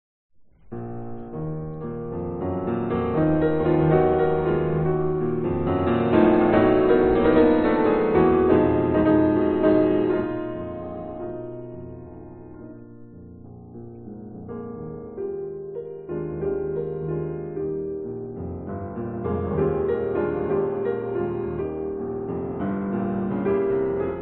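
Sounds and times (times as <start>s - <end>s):
classical prelude music in E-flat minor: 0.5s - 24.1s.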